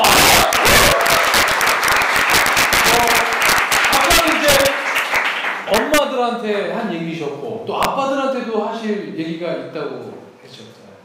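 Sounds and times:
audience applause: 0.0s - 5.9s
speech: 6.4s - 10.7s.

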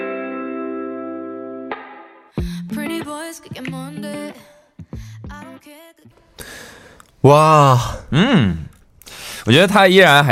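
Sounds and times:
pop song playing: 2.4s - 4.4s
speech: 7.2s - 8.6s, 9.5s - 10.3s.

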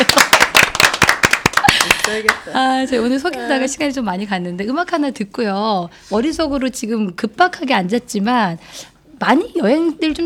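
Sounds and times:
people clapping: 0.0s - 2.5s
speech: 2.1s - 10.2s.

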